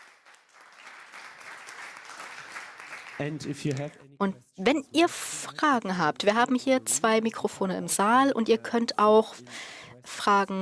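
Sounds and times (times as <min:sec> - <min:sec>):
audience applause: 0:00.0 - 0:03.9
speech: 0:03.2 - 0:10.6.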